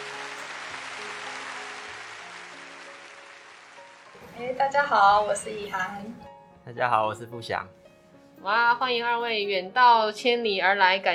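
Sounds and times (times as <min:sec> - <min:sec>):
applause welcoming guests: 0:00.0 - 0:04.2
speech: 0:04.4 - 0:07.8, 0:08.4 - 0:11.1.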